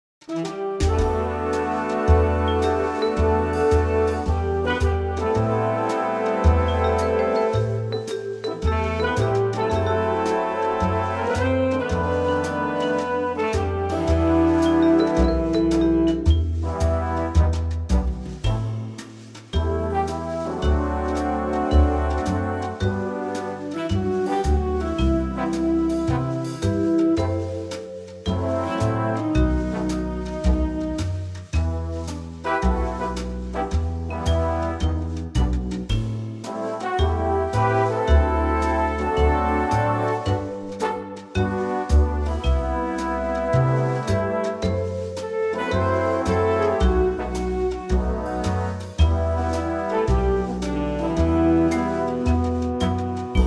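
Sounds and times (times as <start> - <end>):
big band music in E minor: 0.2 - 53.4.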